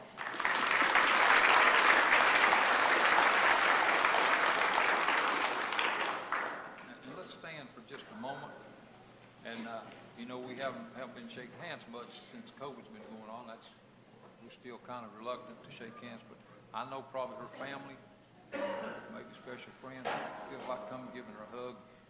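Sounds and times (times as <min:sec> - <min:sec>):
audience applause: 0:00.0 - 0:06.9
speech: 0:11.3 - 0:13.8, 0:14.5 - 0:18.1, 0:18.8 - 0:21.9.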